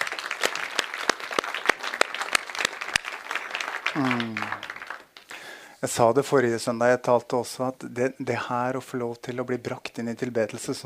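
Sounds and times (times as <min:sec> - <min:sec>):
audience applause: 0:00.0 - 0:05.6
speech: 0:03.9 - 0:04.4, 0:05.8 - 0:10.8.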